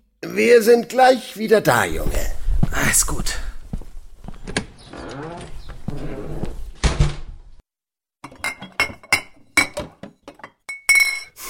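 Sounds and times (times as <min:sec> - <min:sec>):
speech: 0:00.2 - 0:03.5
glass bottles clinking as someone rummages for schnapps: 0:08.2 - 0:11.4.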